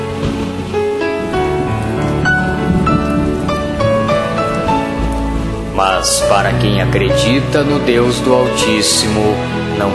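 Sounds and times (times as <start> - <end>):
thunder: 0.0 - 7.0
rain: 0.0 - 9.9
speech: 5.9 - 9.9.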